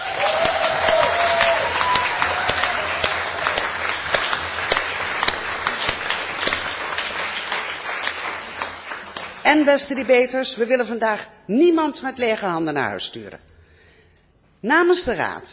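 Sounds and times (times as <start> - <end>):
audience applause for debate teams: 0.0 - 9.8
speech: 9.5 - 13.5, 14.6 - 15.5.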